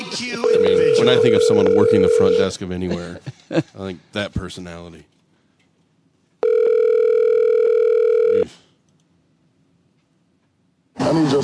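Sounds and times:
speech: 0.2s - 5.1s, 11.0s - 11.4s
telephone line tone: 0.4s - 2.5s, 6.4s - 8.5s.

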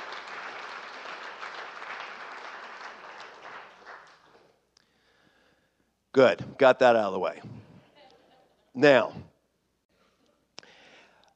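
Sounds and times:
polite round of applause: 0.0s - 4.6s
speech: 6.2s - 7.5s, 8.8s - 9.2s.

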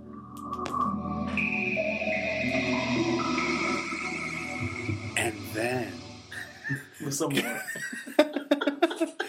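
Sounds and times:
Sega Dreamcast console startup sound: 1.2s - 6.7s
laughter: 6.3s - 9.2s
speech: 7.2s - 8.0s.

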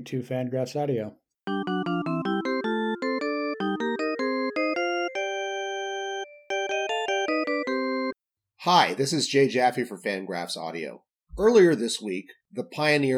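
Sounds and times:
speech: 0.0s - 1.2s, 8.6s - 13.1s
phone ringing: 1.5s - 8.2s.

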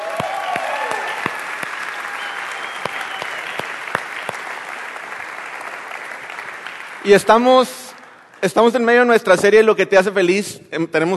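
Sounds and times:
faint voices and cheers: 0.0s - 3.7s
audience clapping: 0.0s - 9.3s
speech: 7.0s - 7.8s, 8.4s - 11.1s.

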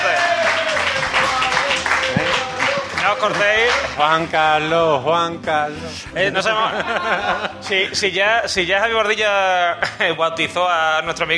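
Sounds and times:
laughter: 0.0s - 4.0s, 6.2s - 8.0s, 9.7s - 10.6s
live audience applause: 0.0s - 4.0s
speech: 3.1s - 11.3s.

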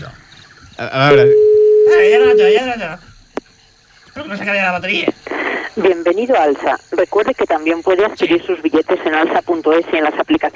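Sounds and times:
speech: 0.8s - 3.1s, 4.2s - 10.5s
telephone tone while calling a 902 number: 1.1s - 2.7s.

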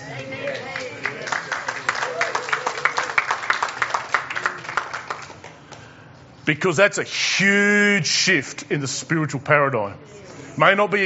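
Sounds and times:
audience applauding: 0.0s - 5.8s
speech: 6.5s - 11.0s.

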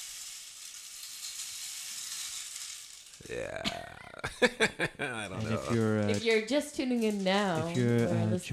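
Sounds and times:
rain stick tilted, beads rattling: 0.0s - 3.4s, 5.3s - 8.5s
speech: 3.2s - 8.5s
laughter: 3.3s - 6.2s, 7.6s - 8.5s.

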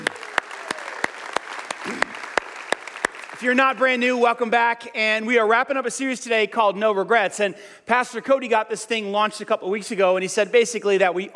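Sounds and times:
church congregation applauding first-time guests: 0.0s - 4.1s
speech: 3.4s - 11.3s.

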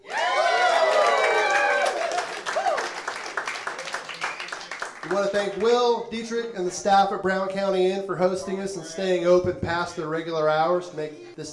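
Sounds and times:
audience applause: 0.0s - 5.6s
speech: 5.1s - 11.5s.

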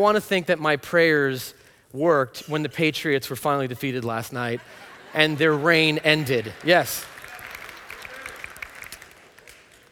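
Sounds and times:
speech: 0.0s - 7.1s
laughter: 4.3s - 7.4s
audience applauding: 5.8s - 9.9s.

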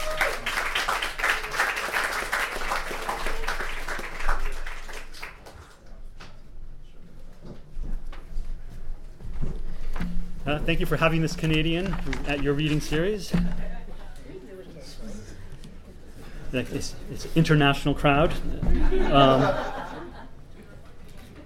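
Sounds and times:
audience applauding an author at a reading series: 0.0s - 5.9s
speech: 10.5s - 13.7s, 16.5s - 19.8s
laughter: 18.5s - 20.8s.

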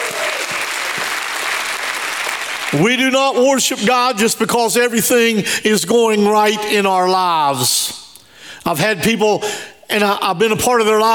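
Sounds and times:
faint cheers: 0.0s - 0.9s
audience clapping: 0.0s - 3.1s
speech: 2.7s - 8.0s, 8.6s - 11.1s.

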